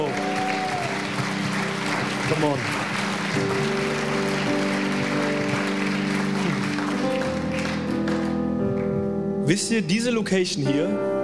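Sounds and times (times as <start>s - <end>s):
audience applause: 0.0s - 8.5s
speech: 2.3s - 2.8s, 9.5s - 11.2s.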